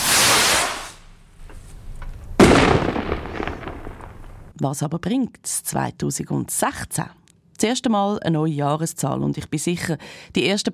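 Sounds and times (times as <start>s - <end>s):
fireworks exploding: 0.0s - 1.1s, 2.2s - 4.5s
speech: 4.6s - 10.7s.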